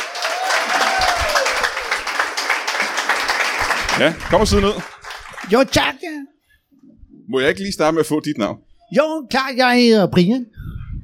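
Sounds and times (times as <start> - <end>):
studio audience applause: 0.0 - 6.0
speech: 4.0 - 6.1, 7.3 - 10.6.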